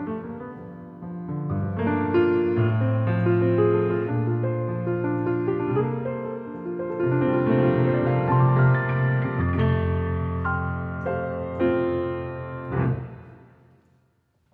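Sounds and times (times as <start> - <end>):
short musical improvisation: 0.0 - 13.8.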